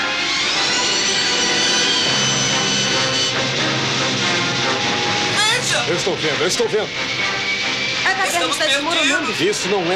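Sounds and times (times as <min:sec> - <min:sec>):
spaceship engine roaring as it takes off from inside an asteroid cave: 0:00.0 - 0:09.9
speech: 0:06.0 - 0:07.4, 0:08.4 - 0:09.9.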